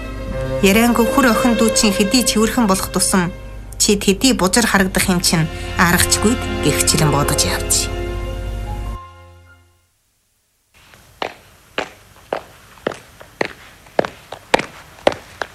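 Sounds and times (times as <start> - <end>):
speech: 0.6 - 8.0
footsteps approaching from behind: 10.8 - 15.5.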